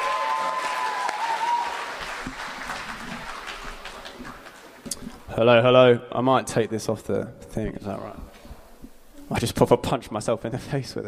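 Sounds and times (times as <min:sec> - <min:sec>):
audience applause: 0:00.0 - 0:05.3
speech: 0:05.4 - 0:08.3, 0:09.3 - 0:11.0.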